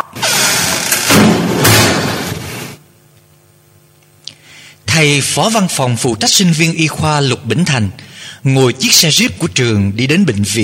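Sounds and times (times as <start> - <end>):
door of an anatomy lab flung open: 0.2 - 2.6
speech: 5.0 - 10.6.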